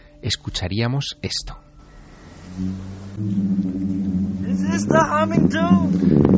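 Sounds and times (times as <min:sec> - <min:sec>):
speech: 0:00.2 - 0:01.6, 0:02.6 - 0:03.7, 0:04.8 - 0:06.3
singing sand dune booming as sand slides: 0:02.4 - 0:06.3.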